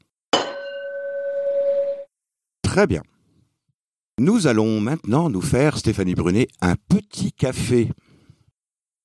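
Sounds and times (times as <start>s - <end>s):
glasses clinking in a toast: 0.4s - 1.9s
speech: 2.8s - 3.1s, 4.2s - 8.1s.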